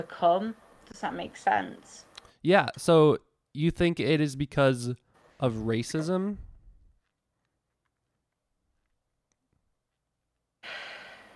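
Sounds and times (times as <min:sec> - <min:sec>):
speech: 0:00.0 - 0:06.5
person exhaling cigarette smoke: 0:10.6 - 0:11.3.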